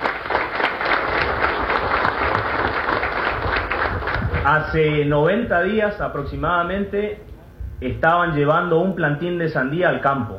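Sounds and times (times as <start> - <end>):
audience applause: 0.0 - 4.5
speech: 4.5 - 10.3.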